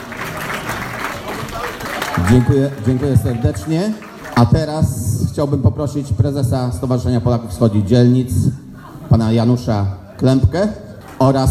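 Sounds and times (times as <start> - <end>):
audience clapping for mothers at a Polish community event: 0.0 - 4.8
speech: 2.2 - 11.5.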